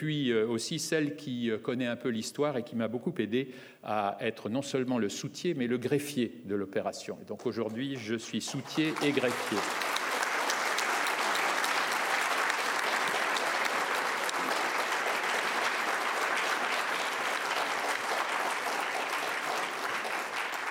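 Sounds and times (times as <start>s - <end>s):
speech: 0.0s - 10.0s
audience applause: 7.8s - 20.6s.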